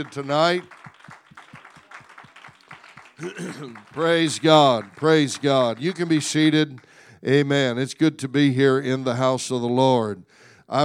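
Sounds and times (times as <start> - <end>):
speech: 0.0 - 0.8, 3.2 - 10.8
congregation clapping hands in praise at a church service: 0.0 - 7.9.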